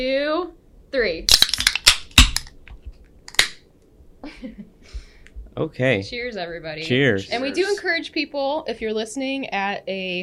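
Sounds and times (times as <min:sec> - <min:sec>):
speech: 0:00.0 - 0:01.4, 0:04.4 - 0:04.7, 0:05.6 - 0:10.2
beer can tabs popping open: 0:01.3 - 0:03.6.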